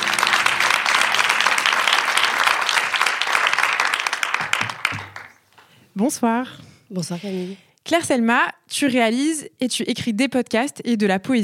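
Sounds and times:
audience applause: 0:00.0 - 0:05.4
speech: 0:06.0 - 0:11.4.

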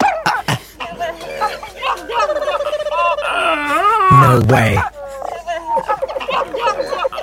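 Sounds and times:
laughter: 0:00.2 - 0:07.2
monkey throat calls: 0:00.9 - 0:04.0, 0:04.9 - 0:07.2.

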